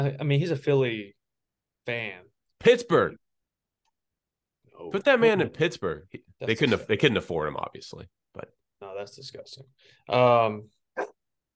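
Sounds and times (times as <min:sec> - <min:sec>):
speech: 0:00.0 - 0:01.2, 0:01.8 - 0:03.2, 0:04.8 - 0:11.1
old grumpy dog barking: 0:11.0 - 0:11.2.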